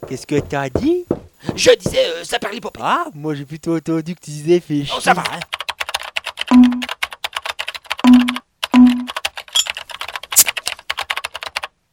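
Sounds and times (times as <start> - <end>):
speech: 0.1 - 5.6
typing on the neighbour's computer keyboard: 5.1 - 11.9.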